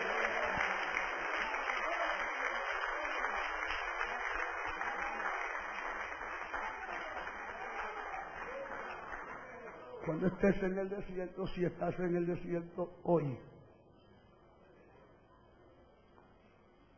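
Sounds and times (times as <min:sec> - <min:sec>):
applause: 0:00.0 - 0:12.7
speech: 0:10.1 - 0:13.5.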